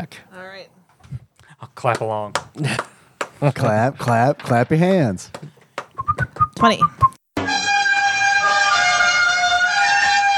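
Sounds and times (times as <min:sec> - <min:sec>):
speech: 0:00.0 - 0:05.6, 0:06.6 - 0:07.1
trumpet-like brassy horn blast: 0:07.4 - 0:10.3.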